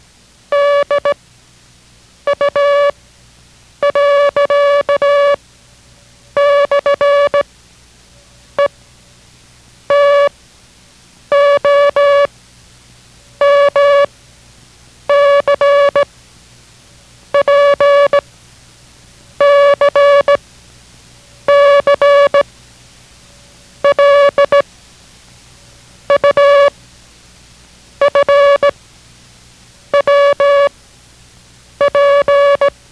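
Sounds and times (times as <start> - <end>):
Morse code beeps: 0.5 - 1.2, 2.3 - 2.9, 3.8 - 5.4, 6.4 - 7.4, 9.9 - 10.3, 11.3 - 12.3, 13.4 - 14.1, 15.1 - 16.0, 17.4 - 18.2, 19.4 - 20.4, 21.5 - 22.4, 23.8 - 24.6, 26.1 - 26.7, 28.0 - 28.7, 30.0 - 30.7, 31.8 - 32.7.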